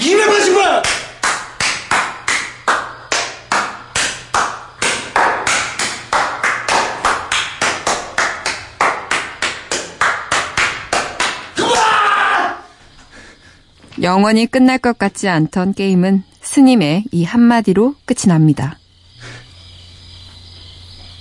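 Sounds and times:
repeated hand clapping in a mountain temple: 0.3s - 11.6s
speech: 14.0s - 18.8s.

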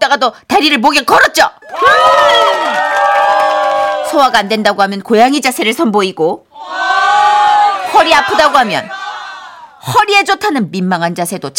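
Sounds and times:
speech: 0.1s - 2.7s, 4.1s - 7.4s, 8.0s - 9.0s, 9.8s - 11.5s
crowd cheering: 1.6s - 4.5s, 6.6s - 9.8s.

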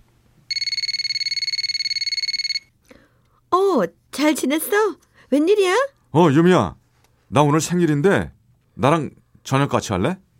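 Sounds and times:
telephone ringing: 0.5s - 2.8s
speech: 3.6s - 10.2s.

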